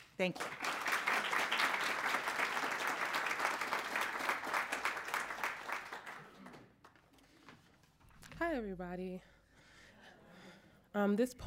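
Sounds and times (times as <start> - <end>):
speech: 0.2 - 0.6, 8.5 - 9.4, 10.9 - 11.4
audience applause at a City Club of Cleveland forum: 0.4 - 6.7.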